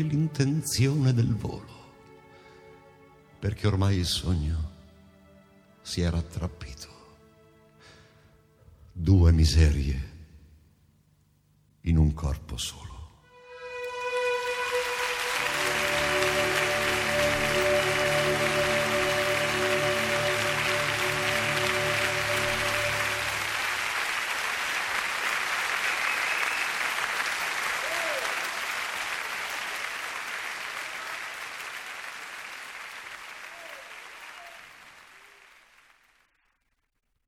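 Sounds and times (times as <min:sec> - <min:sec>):
speech: 0:00.0 - 0:01.8, 0:03.4 - 0:04.7, 0:05.8 - 0:06.9, 0:09.0 - 0:10.1, 0:11.8 - 0:12.9
audience applause after a performance: 0:14.0 - 0:36.4.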